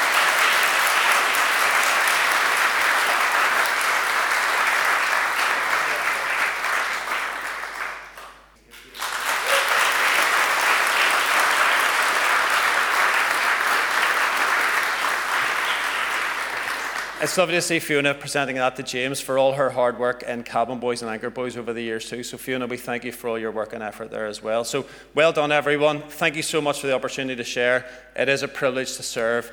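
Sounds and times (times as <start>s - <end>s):
audience applause: 0.0s - 17.6s
speech: 17.2s - 29.5s.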